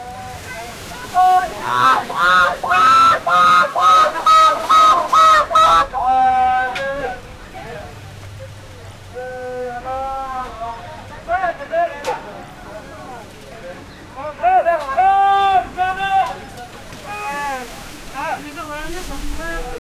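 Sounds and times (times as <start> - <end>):
coastal Kasimedu fish market in Chennai: 0.0 - 19.8
laughter: 1.0 - 7.3.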